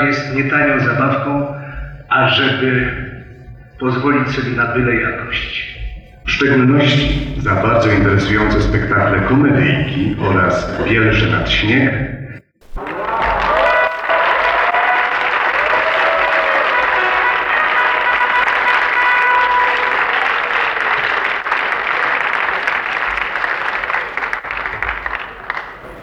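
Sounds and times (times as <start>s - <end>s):
speech: 0.0s - 1.6s, 2.2s - 3.2s, 3.8s - 12.2s
laughter: 7.5s - 11.8s, 12.6s - 26.0s
theatre audience applause: 12.6s - 26.0s.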